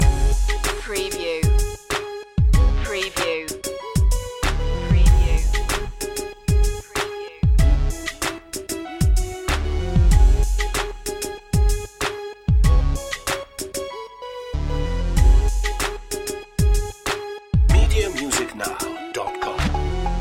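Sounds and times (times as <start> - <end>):
hypnotic music loop: 0.0 - 20.1.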